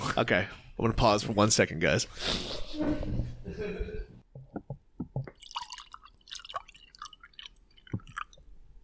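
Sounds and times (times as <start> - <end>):
speech: 0.2 - 4.0
white wine being poured into glasses: 5.3 - 8.4.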